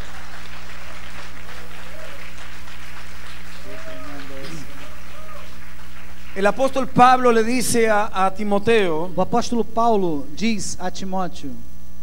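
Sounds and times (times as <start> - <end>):
audience applauding: 0.0 - 7.4
speech: 6.4 - 11.7.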